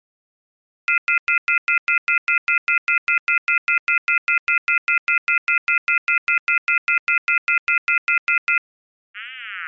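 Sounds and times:
clean phone tones: 0.9 - 8.6.

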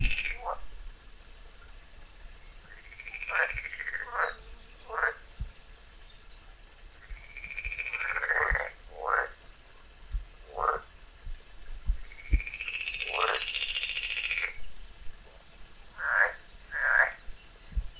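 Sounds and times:
frog croaks: 0.0 - 0.6, 2.7 - 5.2, 7.0 - 9.4, 10.4 - 10.9, 12.0 - 14.6, 15.9 - 17.2.

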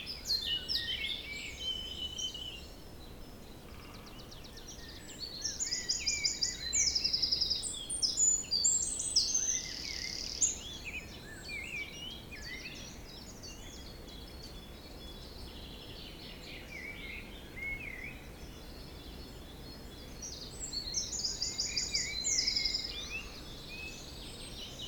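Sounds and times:
birds singing in a forest in spring: 0.0 - 24.8.

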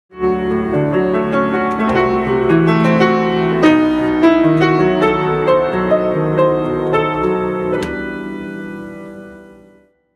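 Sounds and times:
romantic piano improvisation: 0.1 - 10.0.

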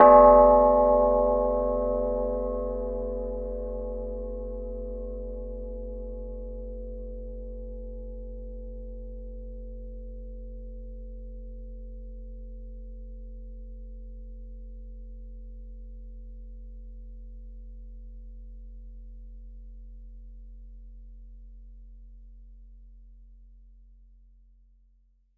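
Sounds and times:
gamelan-like bell: 0.0 - 11.3.

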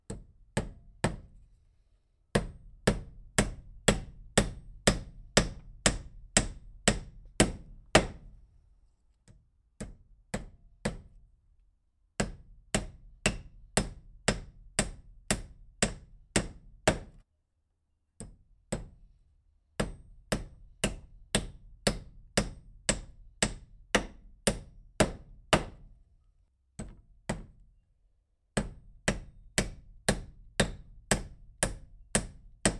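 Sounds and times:
carpentry hammer hitting nail: 0.1 - 1.4, 2.3 - 8.4, 9.8 - 11.2, 12.2 - 17.2, 19.8 - 25.9, 26.8 - 27.5, 28.6 - 32.7.

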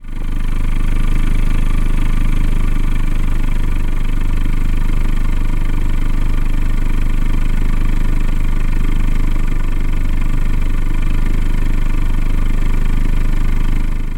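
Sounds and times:
automobile exhaust pipe: 0.0 - 14.1.

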